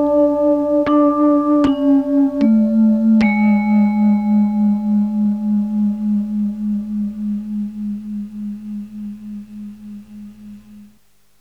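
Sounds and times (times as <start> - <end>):
vibraphone: 0.0 - 6.7.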